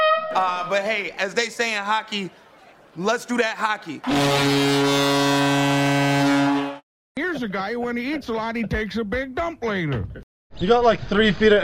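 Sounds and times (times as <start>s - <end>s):
horn sound effect: 0.0s - 0.7s, 4.0s - 6.8s
speech: 0.4s - 2.4s, 3.0s - 5.7s, 7.2s - 11.6s.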